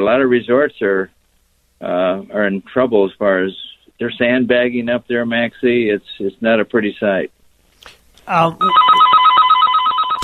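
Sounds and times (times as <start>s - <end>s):
speech: 0.0s - 1.2s, 1.8s - 9.0s
snooze alarm ringing: 8.6s - 10.2s.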